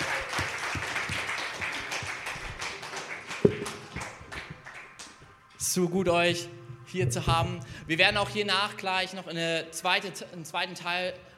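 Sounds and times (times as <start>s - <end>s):
audience applause: 0.0s - 5.3s
speech: 5.8s - 11.3s.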